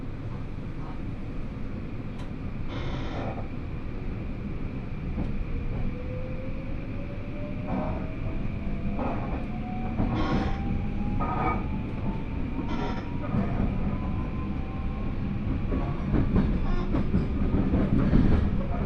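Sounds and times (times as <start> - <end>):
821 series train carriage rumble on the Hōhi Main Line: 0.0 - 18.8.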